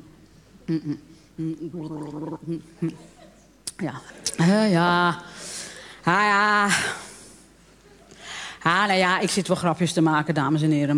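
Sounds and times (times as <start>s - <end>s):
speech: 0.7s - 3.2s, 3.8s - 7.0s, 8.6s - 10.9s
person drinking a glass of water: 1.8s - 2.4s.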